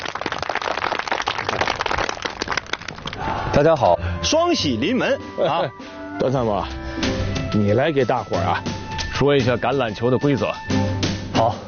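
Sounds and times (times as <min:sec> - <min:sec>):
audience applause: 0:00.0 - 0:03.2
speech: 0:03.6 - 0:11.6.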